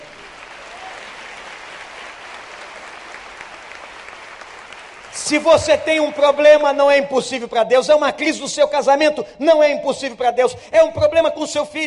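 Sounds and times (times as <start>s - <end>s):
audience applauding: 0.0s - 5.5s
speech: 5.2s - 11.8s.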